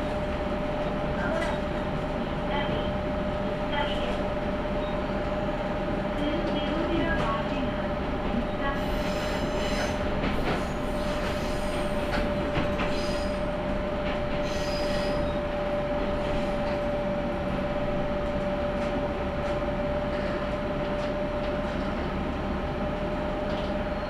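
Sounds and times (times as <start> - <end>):
Tenryū Hamanako Railway train running between Nishikiga and Mikkabi: 0.0 - 24.0
train clattering and squealing: 8.9 - 13.4.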